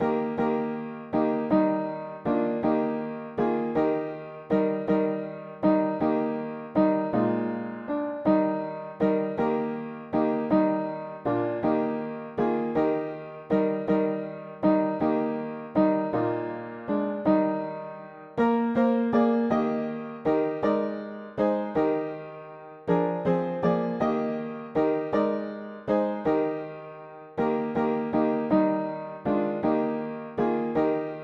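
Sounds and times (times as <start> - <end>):
mono piano: 0.0 - 31.2.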